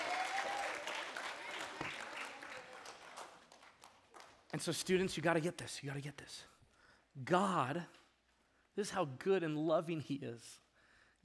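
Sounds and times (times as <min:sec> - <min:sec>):
audience applause: 0:00.0 - 0:04.5
speech: 0:04.5 - 0:06.6, 0:07.2 - 0:08.0, 0:08.8 - 0:10.6.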